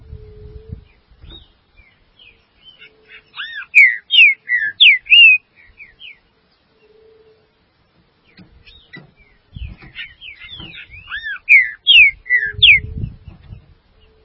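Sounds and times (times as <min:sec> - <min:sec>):
low rustling thumps: 0:00.0 - 0:01.8, 0:07.8 - 0:11.2, 0:12.5 - 0:14.0
Green-winged saltator song: 0:00.0 - 0:14.2.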